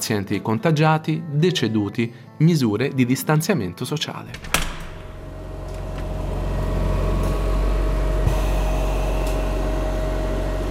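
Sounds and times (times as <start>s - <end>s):
speech: 0.1s - 4.7s
old mechanical ventilator running: 4.5s - 10.6s.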